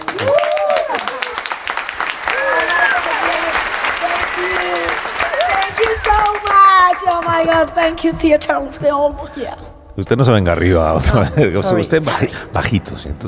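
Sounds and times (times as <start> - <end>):
audience applause: 0.0 - 7.9
speech: 0.2 - 0.4, 7.4 - 13.2.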